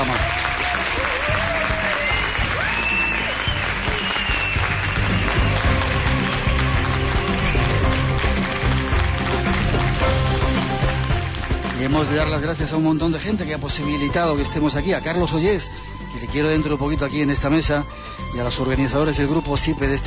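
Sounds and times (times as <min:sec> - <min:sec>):
large audience applause: 0:00.0 - 0:13.2
faint crowd voices and whistles: 0:01.0 - 0:08.1
speech: 0:12.0 - 0:20.0.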